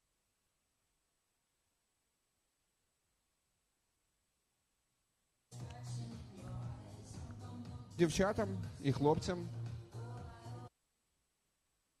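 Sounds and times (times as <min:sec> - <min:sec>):
banquet DJ karaoke music: 0:05.5 - 0:10.7.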